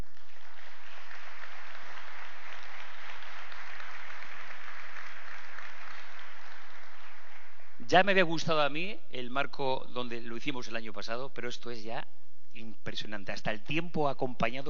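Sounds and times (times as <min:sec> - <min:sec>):
audience applause: 0:00.0 - 0:07.8
speech: 0:07.9 - 0:14.6.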